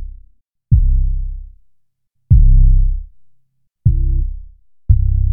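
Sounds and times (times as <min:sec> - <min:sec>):
808 bass without EQ: 0:00.8 - 0:01.3, 0:02.3 - 0:03.1, 0:03.9 - 0:05.2.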